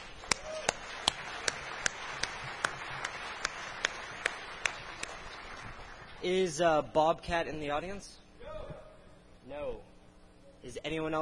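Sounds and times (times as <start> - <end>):
audience applause: 0.0 - 6.2
speech: 6.2 - 8.1, 10.6 - 11.2.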